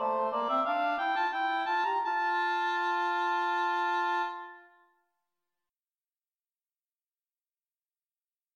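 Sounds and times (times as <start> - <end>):
oboe melody: 0.0 - 4.8.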